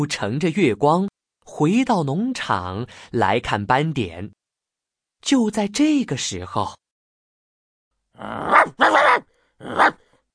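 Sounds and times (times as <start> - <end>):
speech: 0.0 - 4.4, 5.2 - 6.8, 8.2 - 10.0
aggressive hunting dog giving rough growling barks: 8.2 - 10.1.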